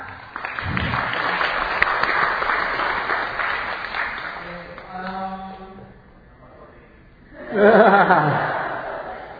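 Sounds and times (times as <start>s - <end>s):
audience applause: 0.3s - 4.8s
laughter: 7.3s - 9.3s.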